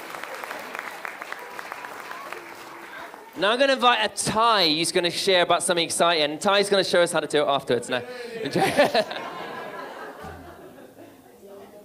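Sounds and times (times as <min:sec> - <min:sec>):
audience applause: 0:00.0 - 0:03.8
speech: 0:03.4 - 0:09.2
laughter: 0:07.9 - 0:11.4.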